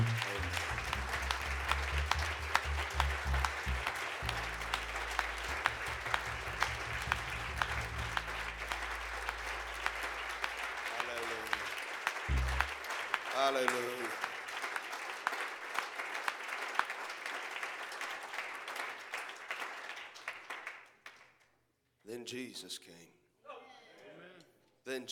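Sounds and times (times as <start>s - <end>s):
low sustained organ or keyboard tone: 0.0s - 10.8s
audience applauding: 0.0s - 21.2s
speech: 22.3s - 23.1s, 24.9s - 25.1s.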